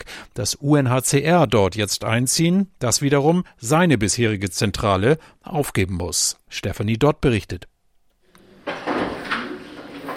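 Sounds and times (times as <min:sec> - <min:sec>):
speech: 0:00.4 - 0:07.7
office drawers being pulled open and emptied: 0:08.4 - 0:10.1.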